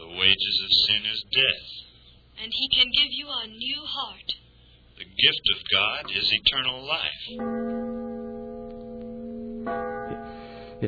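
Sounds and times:
speech: 0:00.3 - 0:01.8, 0:02.4 - 0:04.4, 0:05.0 - 0:08.0, 0:09.7 - 0:09.9
clock striking the hour: 0:05.9 - 0:10.8.

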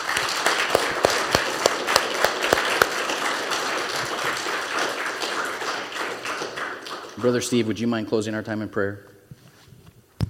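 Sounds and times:
audience applause: 0:00.0 - 0:07.6
speech: 0:07.2 - 0:09.1.

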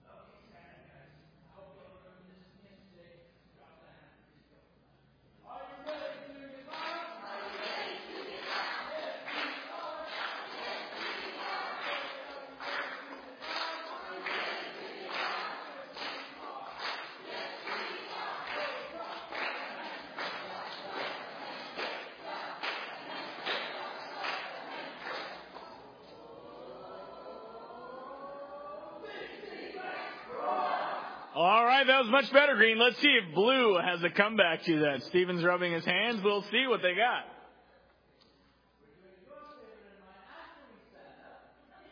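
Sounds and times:
team cheering: 0:06.7 - 0:33.6
speech: 0:31.8 - 0:37.4.

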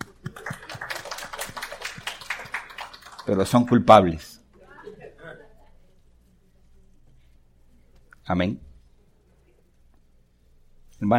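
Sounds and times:
audience applause: 0:00.0 - 0:03.9
speech: 0:03.3 - 0:04.4, 0:08.3 - 0:08.7, 0:11.0 - 0:11.1.

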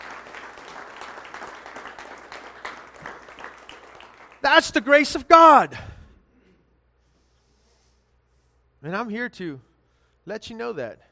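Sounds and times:
audience clapping: 0:00.0 - 0:05.2
speech: 0:04.5 - 0:05.9, 0:08.9 - 0:09.7, 0:10.3 - 0:11.1.

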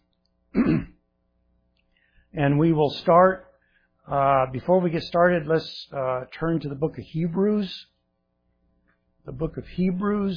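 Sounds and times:
speaker clearing throat: 0:00.5 - 0:01.0
speech: 0:00.6 - 0:00.9, 0:02.4 - 0:03.5, 0:04.1 - 0:07.9, 0:09.2 - 0:10.3.

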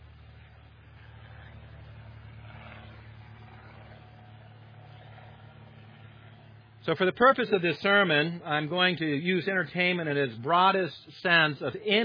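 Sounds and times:
airplane flying overhead: 0:00.0 - 0:12.0
speech: 0:06.8 - 0:12.0.

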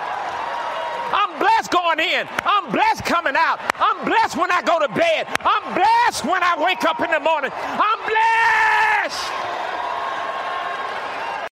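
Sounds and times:
church crowd cheering wildly: 0:00.0 - 0:11.5
speech: 0:01.1 - 0:09.4.

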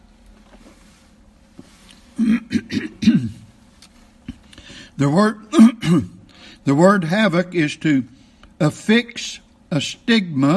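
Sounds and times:
throat clearing: 0:02.1 - 0:03.5, 0:05.5 - 0:06.3
speech: 0:02.2 - 0:02.6, 0:05.0 - 0:10.5.

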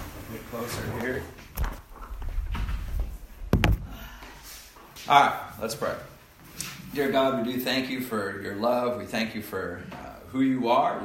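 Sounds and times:
speech: 0:00.3 - 0:01.6, 0:05.0 - 0:11.0
door being closed: 0:01.5 - 0:04.3.

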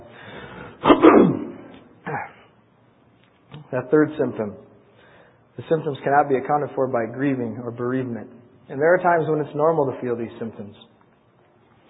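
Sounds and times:
person coughing: 0:00.8 - 0:02.6
speech: 0:03.7 - 0:04.7, 0:05.6 - 0:10.9.

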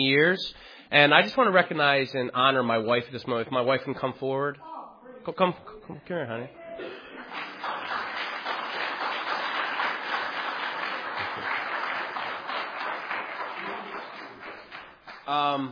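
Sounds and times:
speech: 0:00.0 - 0:07.5, 0:15.3 - 0:15.6
audience clapping: 0:07.0 - 0:15.6.

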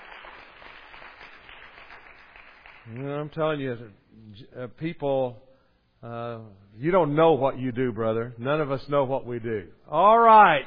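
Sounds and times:
audience applause: 0:00.0 - 0:03.0
speech: 0:02.9 - 0:10.6.

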